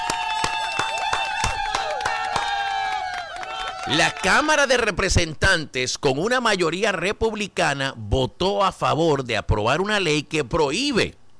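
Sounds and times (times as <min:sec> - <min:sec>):
rhythmic applause: 0:00.0 - 0:04.6
speech: 0:03.9 - 0:11.2.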